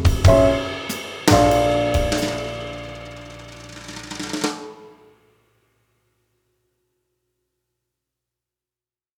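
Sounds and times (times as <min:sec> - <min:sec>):
easy swing music at 96 BPM: 0:00.0 - 0:04.8.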